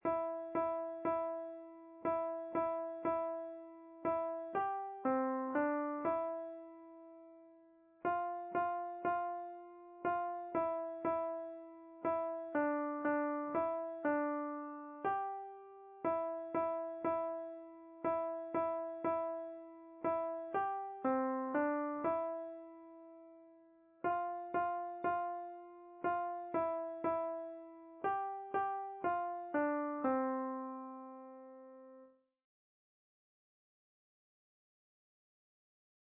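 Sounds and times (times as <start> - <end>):
Christmas song: 0.0 - 32.1.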